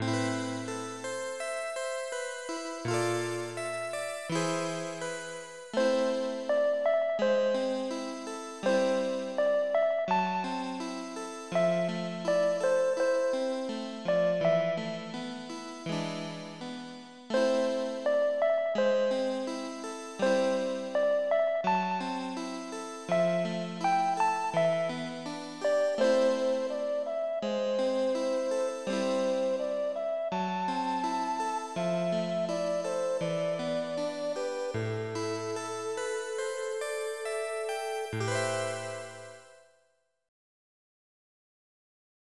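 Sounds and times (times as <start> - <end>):
harp: 0.0 - 39.5.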